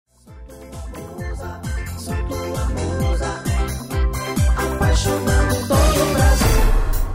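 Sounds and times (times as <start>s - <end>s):
opening music: 0.2s - 7.1s.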